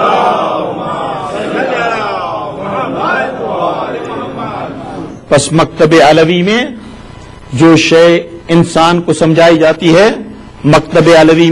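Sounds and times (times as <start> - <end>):
crowd chanting in answer to a slogan: 0.0 - 5.1
speech: 5.3 - 6.9, 7.5 - 11.5.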